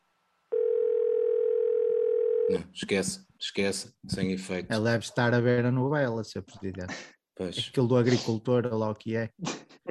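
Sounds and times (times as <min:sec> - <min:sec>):
telephone line tone of an unanswered call: 0:00.5 - 0:02.5
speech: 0:02.5 - 0:09.8.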